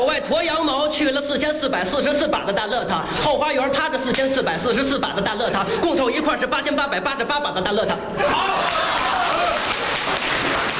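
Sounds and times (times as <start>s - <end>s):
speech: 0.0s - 9.0s
audience applause: 8.4s - 10.7s.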